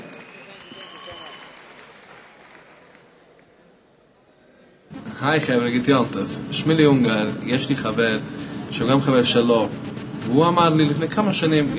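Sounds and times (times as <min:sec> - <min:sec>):
whistles: 0:00.0 - 0:02.4
crowd applause: 0:00.0 - 0:03.8
speech: 0:05.2 - 0:11.7.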